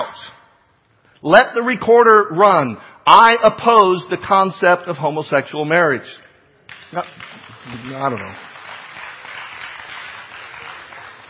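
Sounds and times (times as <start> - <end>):
speech: 1.2 - 6.2, 6.9 - 8.5
crowd applauding: 6.7 - 11.2.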